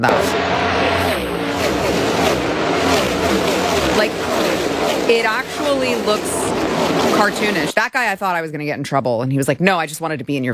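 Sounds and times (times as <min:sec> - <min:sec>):
speech: 0:00.0 - 0:00.4, 0:05.1 - 0:10.5
race cars speeding past on a track: 0:00.0 - 0:07.7.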